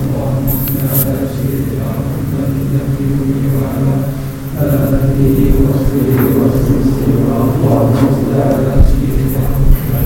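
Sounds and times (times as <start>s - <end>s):
murmuring voices: 0.0s - 10.0s
traffic rumble in a Moroccan town: 0.0s - 10.0s.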